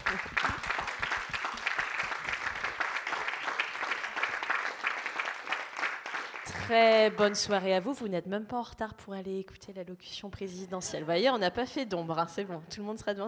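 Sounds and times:
audience applauding: 0.0s - 7.5s
speech: 6.7s - 13.2s.

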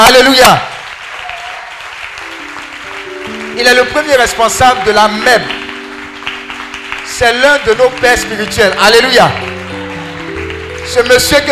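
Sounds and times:
speech: 0.0s - 0.7s, 3.6s - 5.6s, 7.2s - 9.5s, 10.9s - 11.4s
church congregation clapping to acclaim God: 0.0s - 11.4s.

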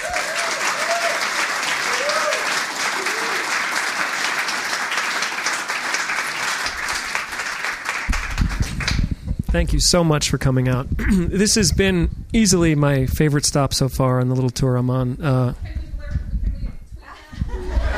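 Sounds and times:
audience applause welcoming a speaker: 0.0s - 9.1s
speech: 9.6s - 15.8s
laughter: 17.1s - 17.9s.

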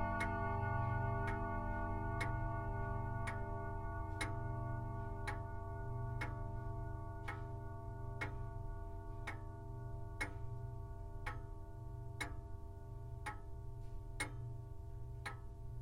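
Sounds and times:
longcase grandfather clock ticking: 0.0s - 0.5s, 4.1s - 4.5s, 5.1s - 15.8s
sustained ringing tones: 0.0s - 11.8s.

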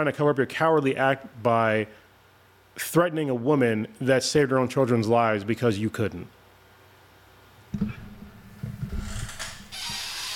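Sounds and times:
speech: 0.0s - 2.0s, 2.8s - 6.4s
chair creaking loudly: 7.8s - 10.3s.

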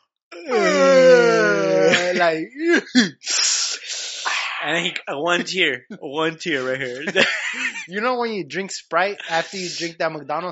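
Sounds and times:
speech: 0.4s - 0.8s, 2.2s - 3.4s, 4.6s - 10.5s
person imitating a loud yawn: 0.4s - 4.8s
laughter: 0.5s - 10.0s.

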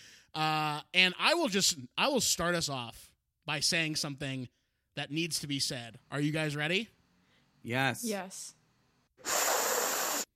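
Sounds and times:
speech: 0.4s - 7.0s, 7.6s - 8.6s, 9.2s - 9.4s
intense sniff: 9.2s - 10.3s.

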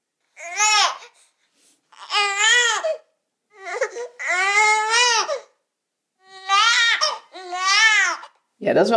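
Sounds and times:
newborn baby neh cry linked to the sucking reflex: 0.3s - 1.2s, 1.9s - 5.6s, 6.2s - 8.4s.

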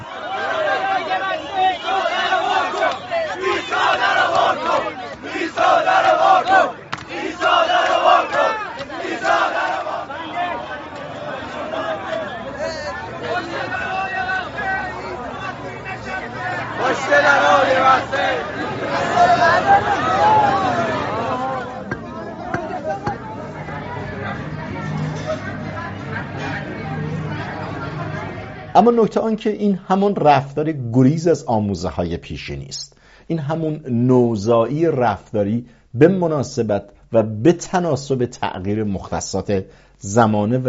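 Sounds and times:
crowd clamoring at church door on Christmas Eve: 0.0s - 29.4s
speech: 28.8s - 40.6s.

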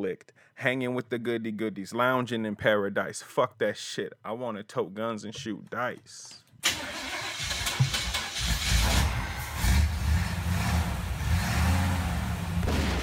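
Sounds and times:
speech: 0.0s - 7.5s
old car engine rumbling and revving: 6.7s - 13.0s.

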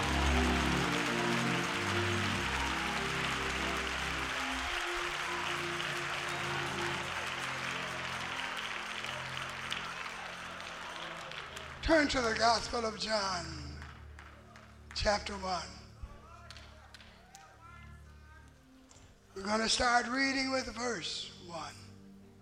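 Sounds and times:
low sustained organ or keyboard tone: 0.0s - 9.4s
audience applause: 0.0s - 12.8s, 13.8s - 15.0s
speech: 11.9s - 13.6s, 15.0s - 15.8s, 19.4s - 21.8s.

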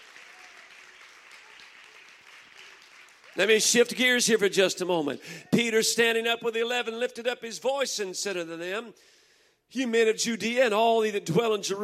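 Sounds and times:
church audience clapping hands: 0.0s - 4.7s
speech: 3.4s - 11.8s.

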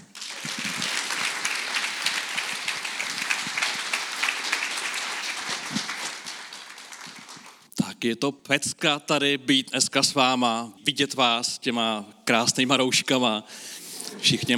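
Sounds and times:
audience applause welcoming a speaker: 0.0s - 7.7s
speech: 8.0s - 14.5s.

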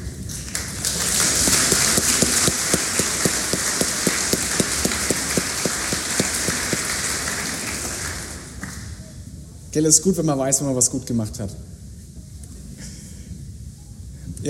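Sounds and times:
applause: 0.3s - 9.1s
speech: 9.8s - 11.7s.

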